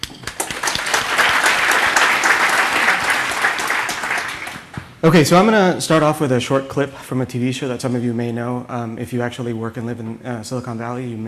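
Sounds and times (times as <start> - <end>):
audience applause: 0.0 - 5.0
speech: 5.0 - 11.2.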